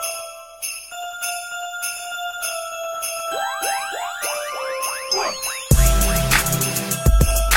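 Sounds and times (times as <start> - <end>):
anime jingle mix: 3.3 - 7.4.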